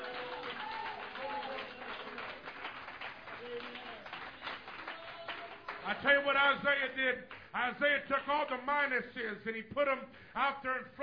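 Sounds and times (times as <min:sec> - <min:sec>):
crowd clapping in praise: 0:00.0 - 0:08.7
speech: 0:05.9 - 0:11.0.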